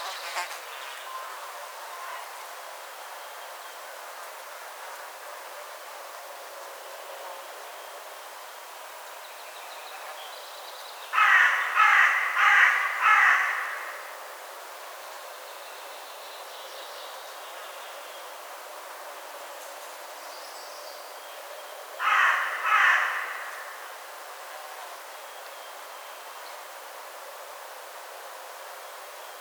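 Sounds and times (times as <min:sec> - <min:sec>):
Carrion crow Corvus corone cawing: 0:11.2 - 0:14.2, 0:22.0 - 0:24.0.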